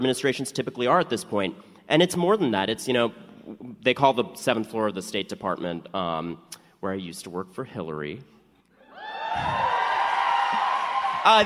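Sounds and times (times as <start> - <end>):
speech: 0.0 - 8.4, 9.3 - 9.7, 11.2 - 11.4
live audience applause and cheering: 8.8 - 11.4.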